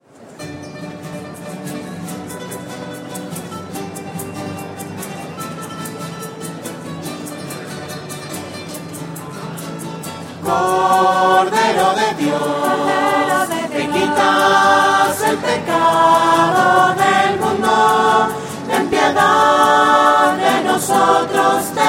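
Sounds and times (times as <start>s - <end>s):
voices: 4.6s - 21.8s.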